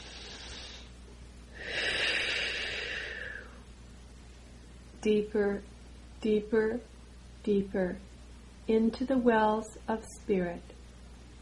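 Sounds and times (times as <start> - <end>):
slow deep breath taken during a guided meditation: 0.0 - 3.7
speech: 5.0 - 8.1, 8.7 - 10.7.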